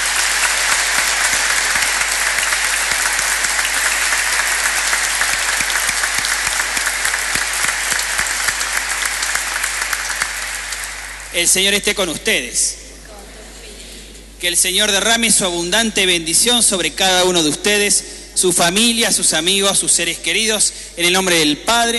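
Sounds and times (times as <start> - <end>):
audience applause: 0.0 - 11.4
speech: 11.4 - 12.8, 14.4 - 21.9.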